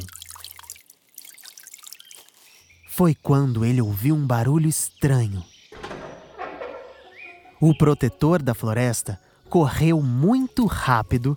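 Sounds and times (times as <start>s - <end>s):
water pouring onto trees, leaves and ground: 0.0s - 2.6s
speech: 3.0s - 5.5s, 7.6s - 11.3s.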